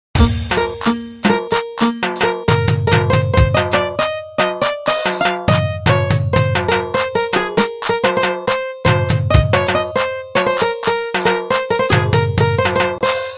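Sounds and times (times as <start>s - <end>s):
Afghan music: 0.1s - 13.3s.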